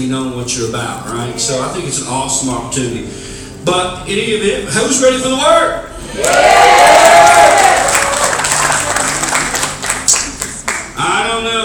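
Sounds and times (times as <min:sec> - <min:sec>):
speech: 0:00.0 - 0:07.7
crowd cheering and applauding: 0:06.1 - 0:11.0.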